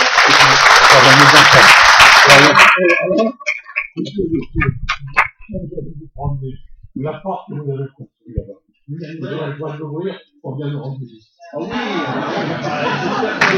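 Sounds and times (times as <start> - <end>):
audience applause: 0.0 - 3.9, 12.8 - 13.5
speech: 1.0 - 13.5
laughter: 11.6 - 13.5.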